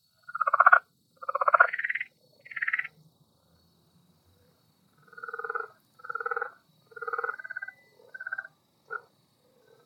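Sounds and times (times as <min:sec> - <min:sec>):
insect ambience: 0:00.0 - 0:09.8.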